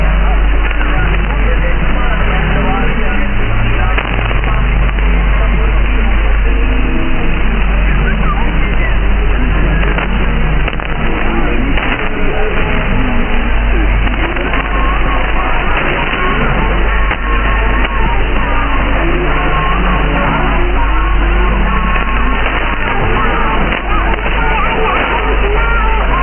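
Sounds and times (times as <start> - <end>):
radio broadcast: 0.0 - 26.2.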